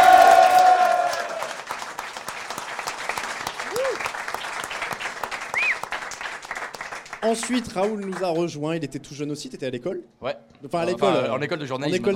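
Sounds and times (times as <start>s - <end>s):
audience applause: 0.0s - 8.6s
speech: 7.2s - 12.1s.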